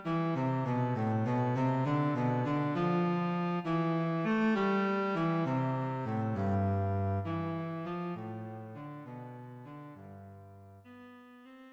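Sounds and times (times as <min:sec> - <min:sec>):
unaccompanied solo cello playing: 0:00.0 - 0:10.1.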